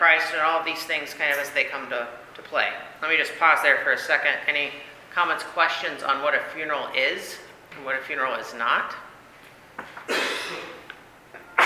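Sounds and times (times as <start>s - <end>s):
speech: 0.1s - 9.0s
sneeze: 10.1s - 10.9s.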